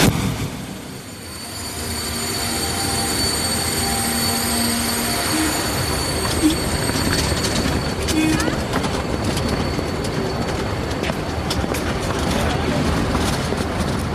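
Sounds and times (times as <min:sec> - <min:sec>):
train rumbling through a railway station: 0:00.0 - 0:14.1
metallic wheel noise and squeals: 0:00.8 - 0:11.4.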